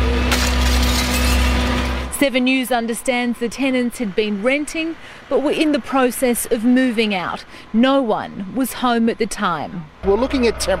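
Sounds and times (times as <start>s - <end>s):
firefighters breaking front window glass: 0.3s - 2.0s
speech: 2.2s - 10.7s.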